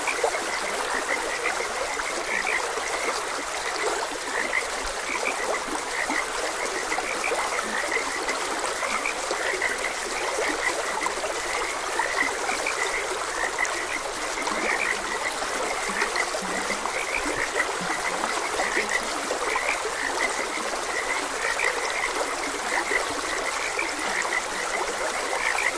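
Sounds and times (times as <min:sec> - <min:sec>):
flowing water: 0:00.0 - 0:25.7
many frogs croaking: 0:00.0 - 0:25.7.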